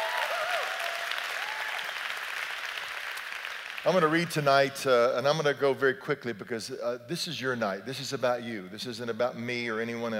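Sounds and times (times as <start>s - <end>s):
audience hand clap: 0.0s - 4.7s
speech: 3.8s - 10.1s.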